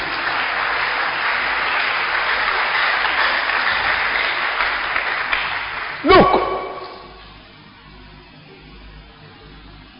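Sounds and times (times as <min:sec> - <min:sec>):
audience clapping in praise: 0:00.0 - 0:07.2.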